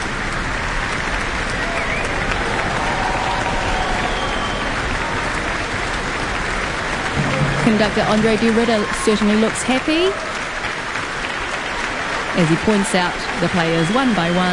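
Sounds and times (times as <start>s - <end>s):
concert hall standing ovation applause: 0.0s - 14.5s
speech: 7.7s - 10.4s, 12.4s - 14.5s.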